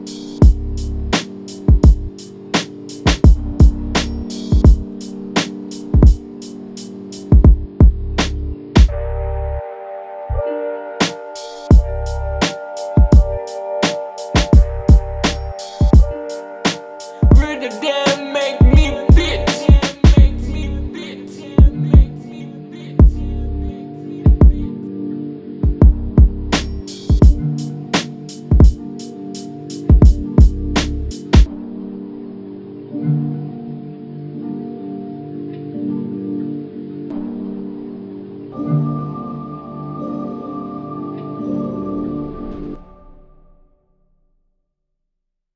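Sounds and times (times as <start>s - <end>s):
boom bap beat: 0.0s - 9.0s, 11.0s - 20.6s, 21.6s - 22.1s, 24.3s - 24.7s, 25.6s - 31.5s.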